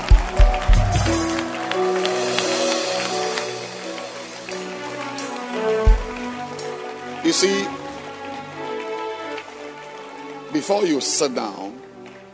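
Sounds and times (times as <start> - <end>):
low thumps: 0.0 - 1.4
crowd clapping: 0.0 - 12.3
speech: 7.3 - 7.8, 10.6 - 11.9.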